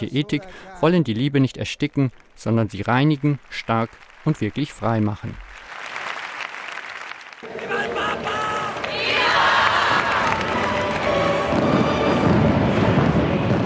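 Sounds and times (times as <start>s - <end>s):
speech: 0.0s - 5.5s
crowd cheering: 3.1s - 13.6s
fireworks: 9.9s - 13.6s.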